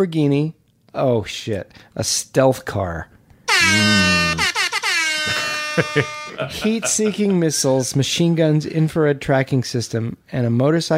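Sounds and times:
speech: 0:00.0 - 0:04.5, 0:05.2 - 0:10.9
air horn from an iPhone app: 0:03.5 - 0:06.4
laughter: 0:03.6 - 0:04.4, 0:05.2 - 0:07.6.

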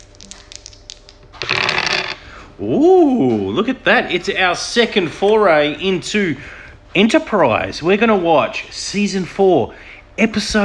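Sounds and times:
dice rattling in a hand: 0:00.0 - 0:02.2
dice clattering across a hard surface: 0:00.5 - 0:02.2
speech: 0:02.6 - 0:10.6.

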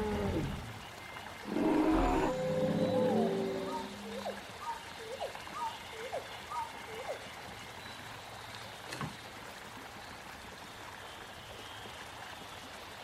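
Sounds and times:
loud rough roar in a prehistoric forest scene: 0:00.0 - 0:00.6, 0:01.5 - 0:04.2
low grunting calls: 0:01.5 - 0:04.4.

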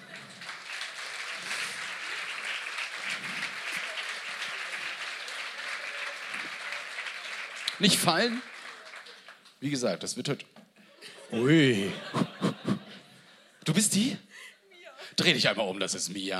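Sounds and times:
audience applause: 0:00.0 - 0:09.9
speech: 0:07.8 - 0:08.5, 0:09.6 - 0:10.6, 0:11.3 - 0:12.3, 0:13.8 - 0:14.3, 0:15.2 - 0:16.3
laughter: 0:10.8 - 0:13.6.

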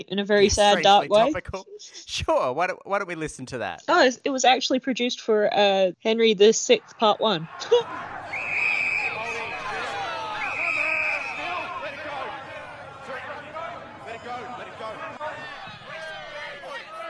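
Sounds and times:
crowd mob riot noise: 0:00.0 - 0:01.6, 0:06.7 - 0:17.0
speech: 0:00.0 - 0:08.2
laughter: 0:00.4 - 0:03.7, 0:06.8 - 0:08.4.

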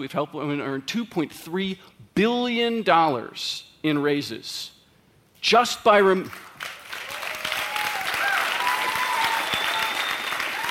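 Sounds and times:
speech: 0:00.0 - 0:04.8, 0:05.4 - 0:06.5
audience clapping at a talk: 0:06.2 - 0:10.6.

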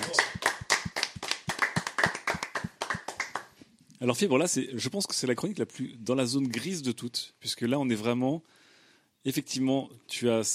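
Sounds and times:
audience applause: 0:00.0 - 0:03.5
speech: 0:04.0 - 0:08.6, 0:09.2 - 0:10.5.

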